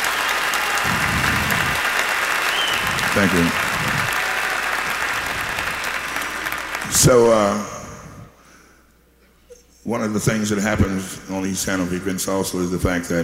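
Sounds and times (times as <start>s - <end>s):
audience applause: 0.0s - 7.6s
speech: 3.2s - 3.7s, 6.9s - 7.7s, 9.9s - 13.2s.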